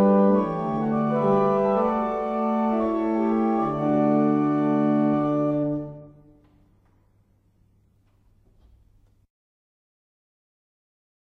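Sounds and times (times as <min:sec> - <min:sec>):
barrel organs: 0:00.0 - 0:06.4.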